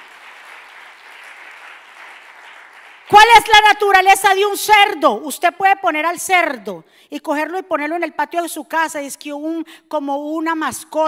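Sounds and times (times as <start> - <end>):
loud applause from audience: 0.0 - 3.4
speech: 3.1 - 11.0.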